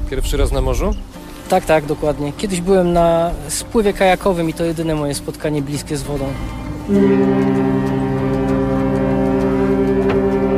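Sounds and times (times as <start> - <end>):
speech: 0.1 - 7.9
ship's horn sounding a greeting: 6.3 - 10.5.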